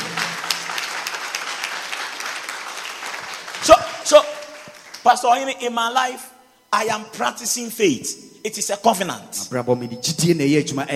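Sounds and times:
audience clapping: 0.0 - 5.5
speech: 3.7 - 4.3, 5.0 - 10.9.

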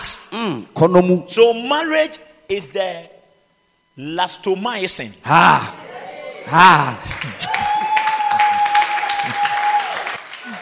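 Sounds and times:
speech: 0.3 - 3.2, 4.0 - 5.8, 6.4 - 7.7
laughter: 5.3 - 9.6
audience clapping: 6.8 - 10.6.

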